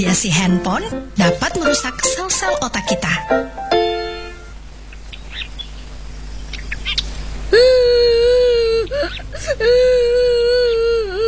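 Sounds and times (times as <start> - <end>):
speech: 0.1 - 3.7
child crying and whimpering: 7.5 - 11.2.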